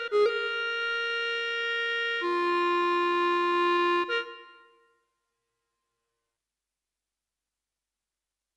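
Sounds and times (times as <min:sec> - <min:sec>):
classical clarinet music on an EWI5000 wind controller: 0:00.0 - 0:04.7.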